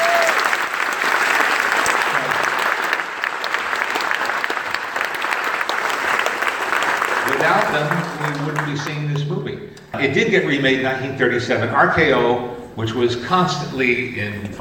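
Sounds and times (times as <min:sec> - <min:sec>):
audience applause: 0:00.0 - 0:09.3
speech: 0:07.6 - 0:14.6.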